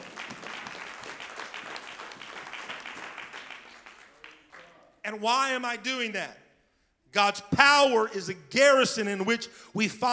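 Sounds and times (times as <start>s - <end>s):
hand clapping: 0.0s - 4.8s
speech: 5.1s - 6.4s, 7.1s - 10.1s.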